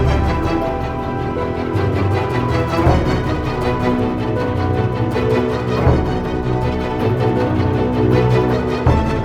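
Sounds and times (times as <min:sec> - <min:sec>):
fast strings: 0:00.0 - 0:09.2.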